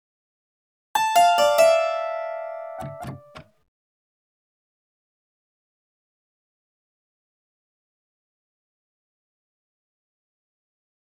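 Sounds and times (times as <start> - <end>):
harpsichord: 1.0 - 3.4.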